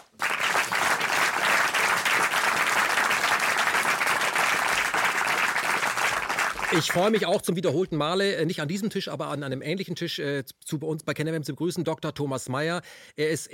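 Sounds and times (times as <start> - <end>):
audience applause: 0.0 - 7.2
speech: 6.7 - 13.5.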